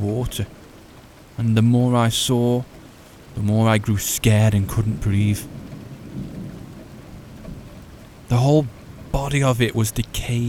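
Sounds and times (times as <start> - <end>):
speech: 0.0 - 0.6, 1.4 - 2.8, 3.4 - 5.6, 8.3 - 10.4
steady rain: 0.0 - 10.4
deep rolling thunder rumble: 5.4 - 9.3.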